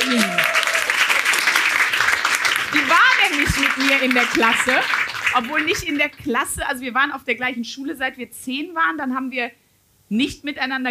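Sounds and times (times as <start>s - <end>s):
rising whoop or cheer: 0.0s - 1.2s
audience applause: 0.0s - 6.1s
speech: 0.1s - 0.5s, 2.8s - 10.8s.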